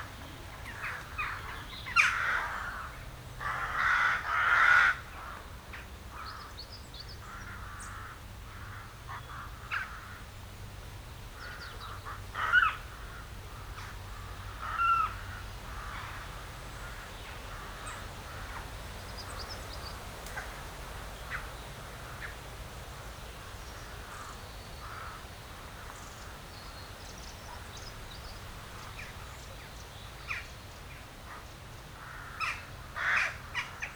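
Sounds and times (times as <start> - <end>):
crows: 0.7 - 5.4, 7.2 - 10.3, 11.4 - 18.7, 23.7 - 26.1, 32.0 - 33.9.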